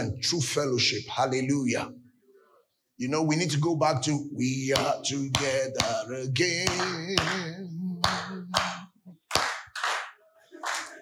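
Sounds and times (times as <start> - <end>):
speech: 0.0 - 2.0, 3.0 - 7.8
hands clapping: 6.7 - 11.0.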